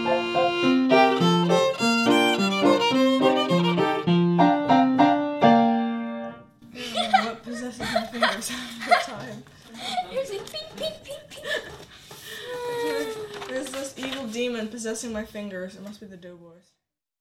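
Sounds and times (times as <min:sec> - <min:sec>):
piano and violin duet: 0:00.0 - 0:06.3
laughter: 0:06.7 - 0:13.4.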